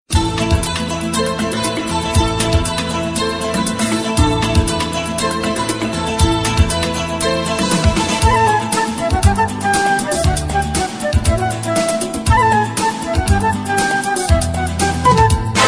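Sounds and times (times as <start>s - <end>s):
musical tone: 1.2s - 15.6s.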